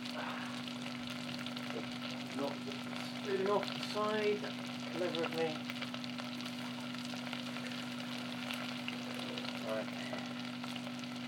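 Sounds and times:
carrots frying in a pan: 0:00.0 - 0:11.2
speech: 0:01.8 - 0:05.7, 0:09.7 - 0:10.3.

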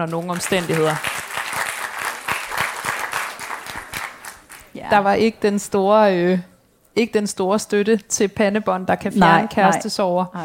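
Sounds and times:
speech: 0:00.0 - 0:01.2, 0:04.8 - 0:10.4
audience clapping: 0:00.0 - 0:05.1.

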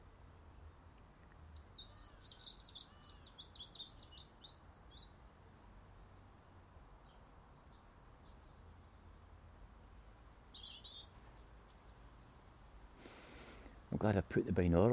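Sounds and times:
morning birdsong: 0:00.0 - 0:05.2, 0:06.0 - 0:14.9
speech: 0:14.0 - 0:14.9.

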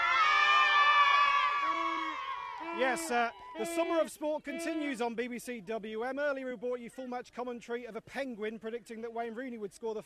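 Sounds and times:
school crowd cheering at St George's in Newtown: 0:00.0 - 0:04.8
speech: 0:02.8 - 0:10.0.

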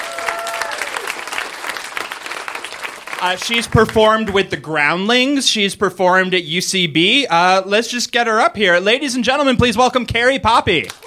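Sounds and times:
room full of people applauding: 0:00.0 - 0:04.5, 0:10.8 - 0:11.0
speech: 0:03.2 - 0:11.0.

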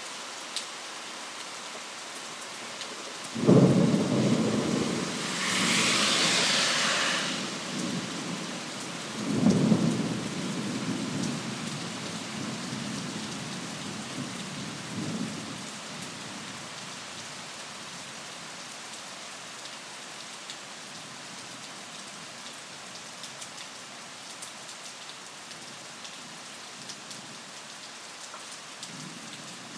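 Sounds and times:
thunderstorm at midnight: 0:03.4 - 0:15.6.

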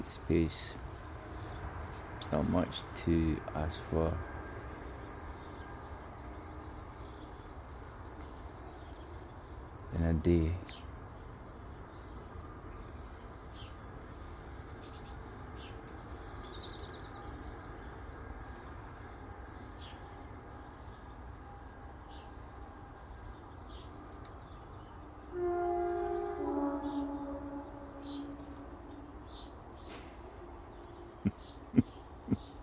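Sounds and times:
speech: 0:00.0 - 0:00.8, 0:02.2 - 0:04.3, 0:09.9 - 0:10.8
train rumbling past: 0:00.0 - 0:32.3
birds chirping: 0:00.0 - 0:32.6
train horn: 0:25.2 - 0:29.3.

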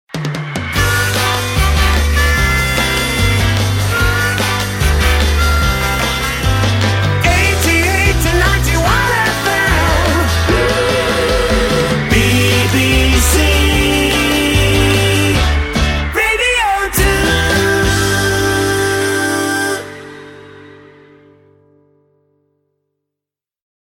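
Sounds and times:
60s rock theme music: 0:00.1 - 0:22.1.

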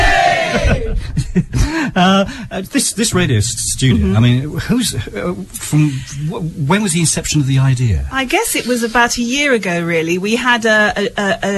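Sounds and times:
school crowd cheering loudly: 0:00.0 - 0:00.9
laughter: 0:00.0 - 0:02.3
speech: 0:01.3 - 0:11.5.

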